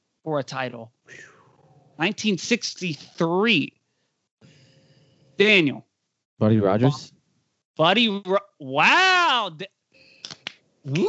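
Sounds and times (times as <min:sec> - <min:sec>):
speech: 0:00.2 - 0:01.3, 0:02.0 - 0:03.8, 0:05.4 - 0:07.2, 0:07.8 - 0:09.8, 0:10.8 - 0:11.0
hand claps: 0:10.2 - 0:11.0.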